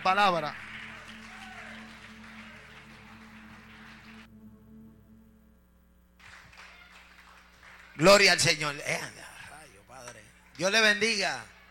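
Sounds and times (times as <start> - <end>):
speech: 0.0 - 0.7, 8.0 - 9.3, 10.6 - 11.5
audience applause: 0.0 - 4.3, 6.2 - 11.7.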